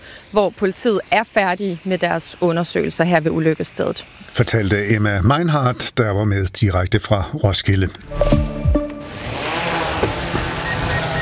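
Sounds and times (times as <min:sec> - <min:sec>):
speech: 0:00.3 - 0:08.5
agricultural crop-spraying drone buzzing: 0:08.0 - 0:11.2.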